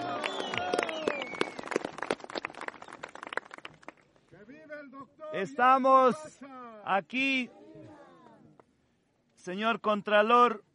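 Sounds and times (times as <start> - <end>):
audience applause: 0.0 - 4.0
speech: 5.4 - 7.6, 9.4 - 10.7.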